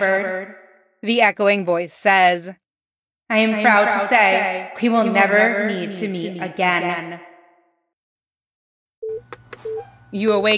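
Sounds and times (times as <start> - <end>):
speech: 0.0 - 2.6, 3.3 - 7.3, 10.1 - 10.5
beeping hospital monitors: 9.0 - 10.5.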